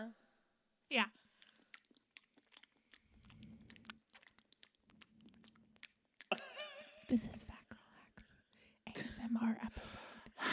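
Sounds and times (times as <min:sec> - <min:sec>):
speech: 0:00.0 - 0:00.2, 0:00.9 - 0:01.2, 0:07.1 - 0:07.4
wet chewing of an apple: 0:01.1 - 0:07.6
crisp bites into an apple: 0:01.4 - 0:06.3.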